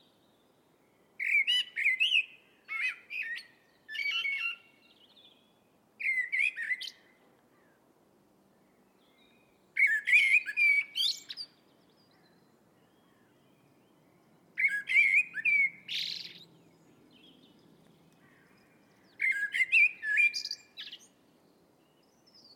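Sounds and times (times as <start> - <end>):
Eurasian blackbird singing: 1.2 - 7.7, 8.8 - 22.5.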